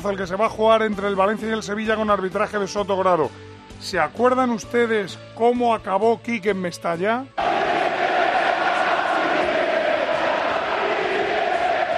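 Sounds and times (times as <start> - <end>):
speech: 0.0 - 7.5
stadium crowd chanting for coach to leave: 7.4 - 11.9.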